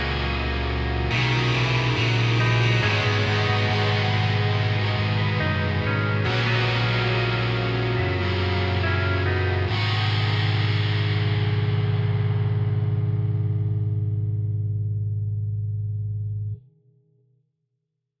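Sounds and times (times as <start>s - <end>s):
guitar: 0.0s - 16.7s.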